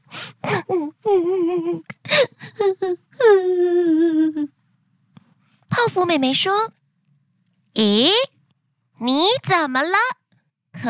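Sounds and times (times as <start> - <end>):
person crying: 0.4 - 4.5
speech: 0.7 - 4.6, 5.8 - 6.8, 7.8 - 8.3, 9.0 - 10.2.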